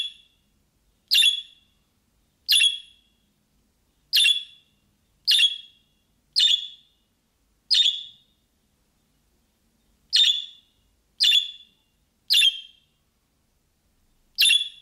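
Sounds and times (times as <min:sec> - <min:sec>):
budgerigar chirping: 0:00.0 - 0:00.3, 0:01.1 - 0:01.6, 0:02.5 - 0:03.0, 0:04.1 - 0:04.6, 0:05.3 - 0:05.8, 0:06.4 - 0:06.9, 0:07.7 - 0:08.2, 0:10.1 - 0:12.8, 0:14.4 - 0:14.7.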